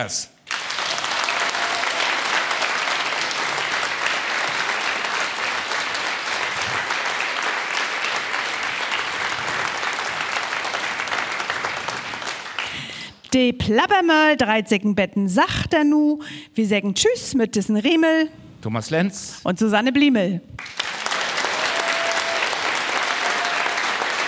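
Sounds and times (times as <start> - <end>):
speech: 0.0 - 0.4, 13.3 - 20.8
large audience applause: 0.4 - 13.0, 20.6 - 24.2.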